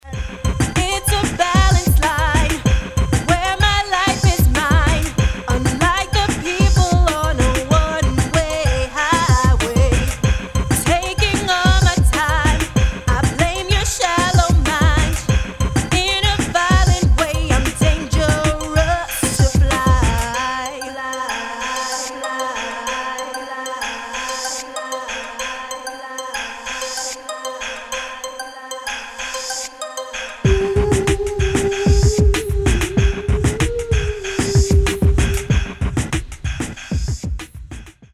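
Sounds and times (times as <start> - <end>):
electronica music: 0.0 - 35.9.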